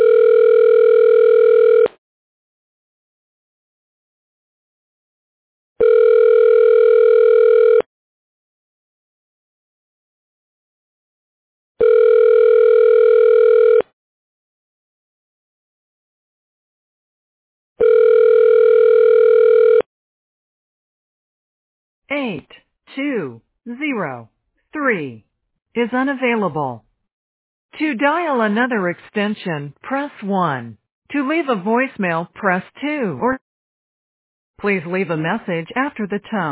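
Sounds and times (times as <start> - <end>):
telephone ringback tone while a call is transferred to a hospital CAT scan room: 0.0 - 1.9, 5.8 - 7.8, 11.8 - 13.8, 17.8 - 19.9
brief recorded voice fragment: 22.1 - 26.9, 27.7 - 33.4, 34.6 - 36.4
speech: 24.9 - 25.2, 25.8 - 26.8, 27.7 - 33.4, 34.6 - 36.4.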